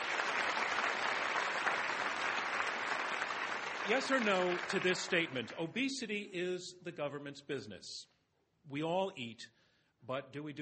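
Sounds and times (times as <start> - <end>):
audience applause: 0.0 - 5.6
speech: 3.9 - 10.6.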